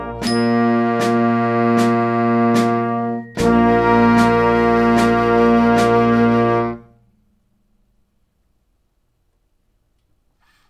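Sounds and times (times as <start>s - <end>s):
quarter-note rhythm counting exercise at 76: 0.1s - 6.8s.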